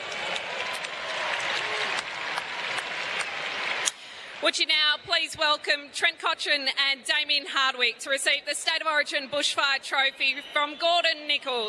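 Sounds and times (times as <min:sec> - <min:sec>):
round of applause for a group: 0:00.0 - 0:04.5
speech: 0:04.4 - 0:11.6.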